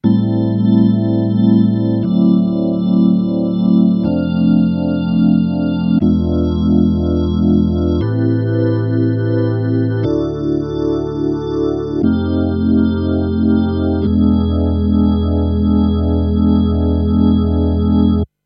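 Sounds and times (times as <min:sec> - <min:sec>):
electric organ with Neo Ventilator II rotary effect: 0:00.0 - 0:18.3.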